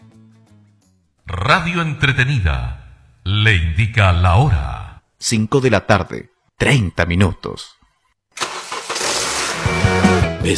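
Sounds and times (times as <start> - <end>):
speech: 1.3 - 7.8
car engine cranking and starting: 8.4 - 10.4.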